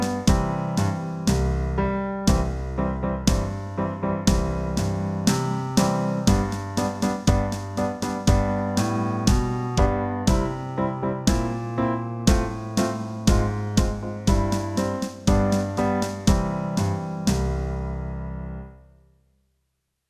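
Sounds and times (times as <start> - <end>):
musical piece in B flat: 0.0 - 18.8.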